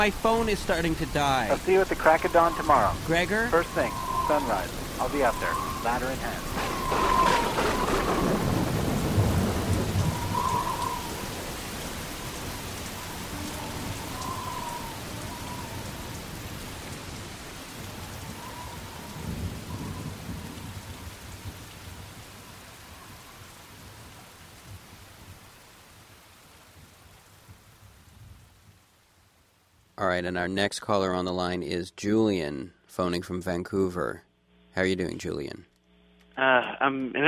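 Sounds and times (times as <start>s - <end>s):
speech: 0.0s - 8.3s, 30.1s - 35.7s, 36.4s - 37.2s
deep rolling thunder: 0.0s - 25.5s
steady hissing rain: 0.0s - 30.7s.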